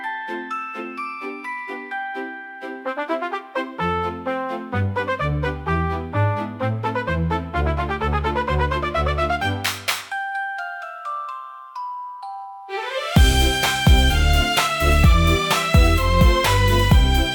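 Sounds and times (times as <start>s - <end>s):
comical orchestra for slapstick gag scene: 2.8s - 9.9s, 12.7s - 17.3s.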